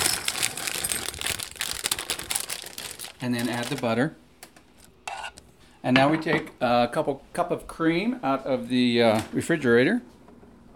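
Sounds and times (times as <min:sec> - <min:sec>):
chocolate chunks poured into a bowl: 0:00.0 - 0:03.9
speech: 0:03.2 - 0:04.2, 0:05.8 - 0:10.2.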